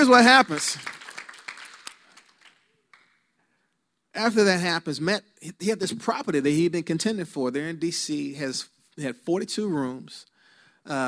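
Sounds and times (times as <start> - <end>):
speech: 0.0 - 1.0, 4.2 - 11.0
audience clapping: 0.0 - 3.3.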